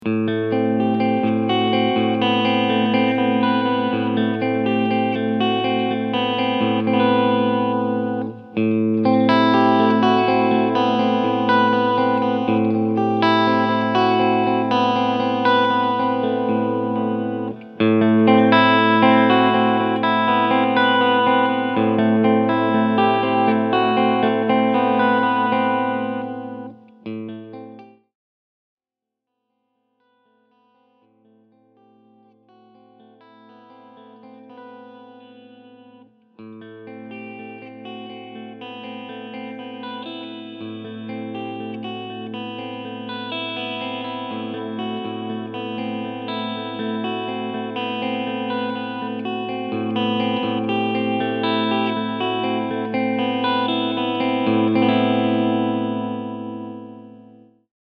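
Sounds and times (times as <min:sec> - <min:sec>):
S 500 guitar clean tone with all pickups and tone knob raised: 0:00.0 - 0:28.0, 0:30.5 - 0:57.6.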